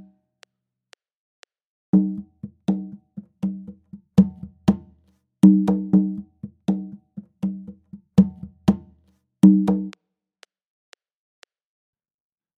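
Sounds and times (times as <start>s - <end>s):
Latin American iyesa rhythm music: 2.0s - 10.0s.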